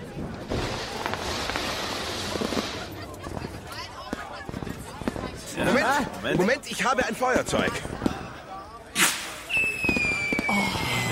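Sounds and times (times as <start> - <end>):
fireworks exploding on a balcony: 0.1 - 5.6, 9.0 - 11.1
speech: 6.0 - 8.1.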